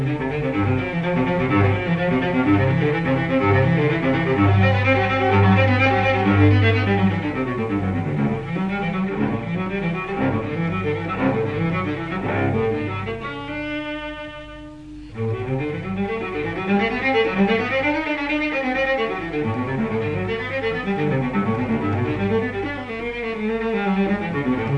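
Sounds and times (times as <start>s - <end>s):
solo cello prelude in C major: 0.0s - 24.7s.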